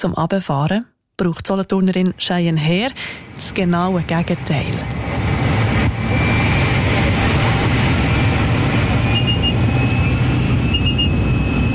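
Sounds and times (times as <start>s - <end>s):
speech: 0.0s - 5.2s
loud small propeller airplane cabin engine: 2.9s - 11.7s.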